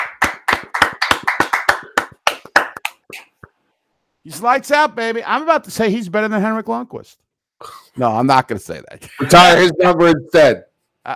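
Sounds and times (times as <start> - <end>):
hand claps: 0.0 - 3.6
speech: 4.2 - 7.2, 8.0 - 11.1.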